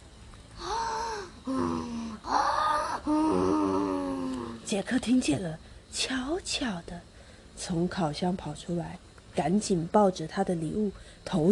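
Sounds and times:
voice imitating a giant's snoring: 0.6 - 4.6
speech: 4.7 - 11.5.

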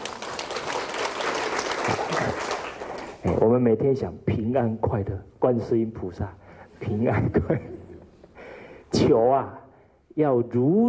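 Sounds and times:
audience applause: 0.0 - 3.2
speech: 1.9 - 2.5, 3.2 - 7.8, 9.0 - 9.6, 10.2 - 10.8.

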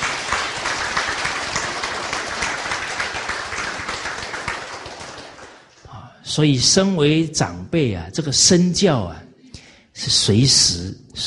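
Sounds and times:
audience applause: 0.0 - 5.7
speech: 6.4 - 9.2, 10.0 - 11.2.

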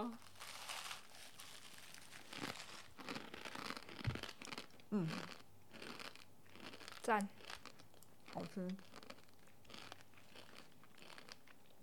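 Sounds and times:
speech: 0.0 - 0.3, 4.9 - 5.4, 7.1 - 7.4, 8.4 - 8.9
Prince noodle snack packet being opened: 0.0 - 4.4.

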